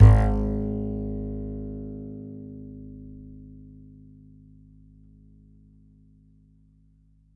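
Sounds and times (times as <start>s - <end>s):
E note on the E string of an upright bass: 0.0s - 2.1s.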